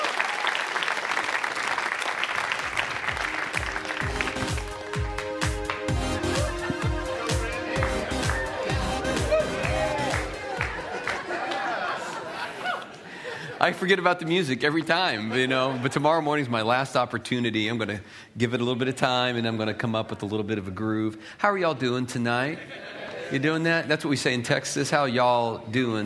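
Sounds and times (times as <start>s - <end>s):
audience applause: 0.0s - 13.3s
laughter: 5.9s - 14.4s, 15.1s - 16.3s, 22.5s - 23.6s
speech: 13.6s - 26.0s.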